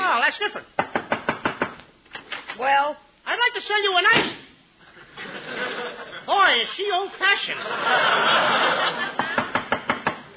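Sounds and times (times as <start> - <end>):
salesman knocking on a door in a comedy sketch: 0.8 - 1.8, 9.4 - 10.2
speech: 2.6 - 4.4, 6.5 - 9.1
audience laughter: 5.0 - 6.3, 7.5 - 9.6.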